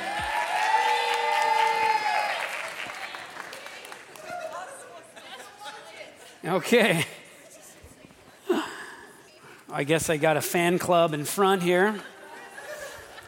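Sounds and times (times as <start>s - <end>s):
audience applause: 0.0s - 4.9s
cheers and chatter: 0.0s - 5.2s
speech: 6.4s - 7.2s, 9.8s - 12.1s
laughter: 11.7s - 13.2s.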